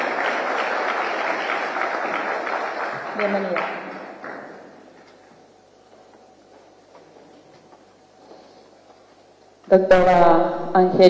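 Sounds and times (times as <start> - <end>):
audience applause: 0.0 - 5.1
speech: 3.2 - 3.9, 9.7 - 11.0.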